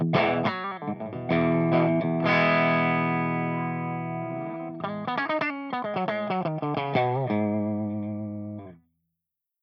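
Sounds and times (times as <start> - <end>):
clean electric guitar with P90 pickup through Blackstar HT amp and V30 speaker: 0.0 - 8.8.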